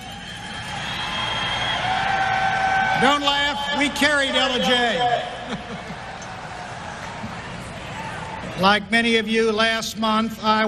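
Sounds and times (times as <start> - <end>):
piercing whistles and whoops: 0.0 - 3.0
large rally crowd cheering: 0.0 - 8.6
speech: 3.0 - 5.8, 8.6 - 10.6
laughter: 5.2 - 6.4.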